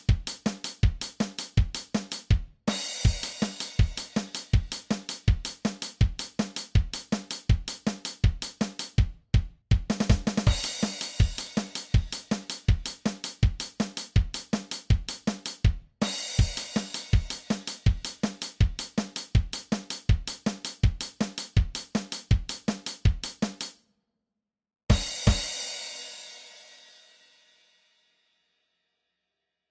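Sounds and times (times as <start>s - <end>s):
drum kit: 0.0s - 23.8s, 24.9s - 27.2s.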